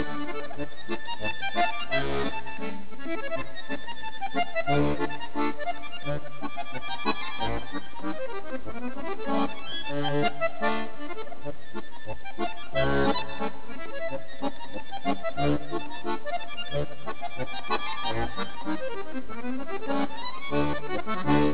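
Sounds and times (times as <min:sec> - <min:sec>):
Italian accordions playing: 0:00.0 - 0:21.5.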